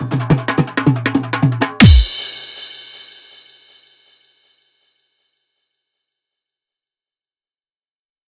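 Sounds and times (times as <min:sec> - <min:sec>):
dholak bass dance mix: 0:00.0 - 0:02.8.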